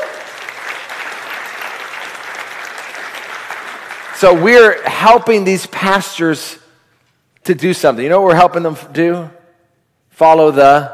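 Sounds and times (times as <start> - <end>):
audience clapping: 0.0 - 5.4
speech: 4.2 - 6.6, 7.4 - 9.4, 10.2 - 10.9.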